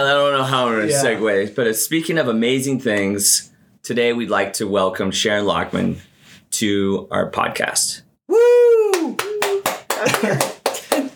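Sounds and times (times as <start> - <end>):
speech: 0.0 - 8.1, 10.0 - 10.5
two people clapping: 8.8 - 11.1.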